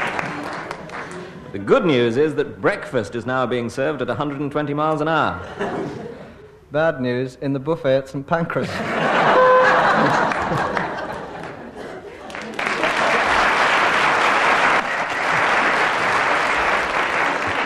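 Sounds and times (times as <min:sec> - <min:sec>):
audience applause after a round of a comedy panel game: 0:00.0 - 0:01.4, 0:09.3 - 0:17.6
speech: 0:01.5 - 0:08.9
audience laughter: 0:05.4 - 0:06.4, 0:08.6 - 0:16.6.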